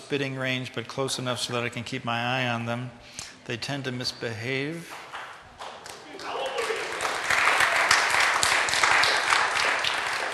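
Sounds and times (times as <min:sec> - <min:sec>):
speech: 0:00.1 - 0:05.0
audience clapping: 0:04.9 - 0:10.3.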